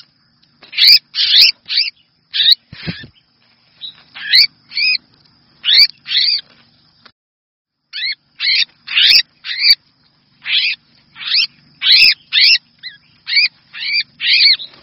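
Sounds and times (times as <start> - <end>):
red-whiskered bulbul distress call: 0.7 - 5.0, 5.6 - 6.5, 7.9 - 9.8, 10.4 - 14.8.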